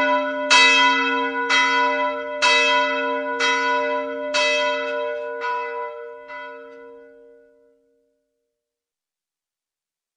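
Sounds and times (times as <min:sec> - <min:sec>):
morning church bells ringing: 0:00.0 - 0:07.7.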